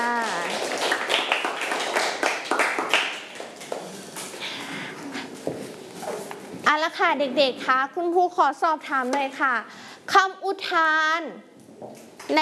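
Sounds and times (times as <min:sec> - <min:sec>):
roomful of children clapping hands in classroom: 0:00.0 - 0:03.9
speech: 0:06.8 - 0:12.4.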